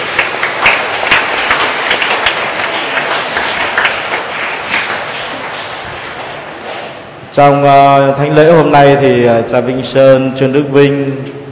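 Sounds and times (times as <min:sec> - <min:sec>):
crowd applause: 0:00.0 - 0:06.9
speech: 0:07.4 - 0:11.4.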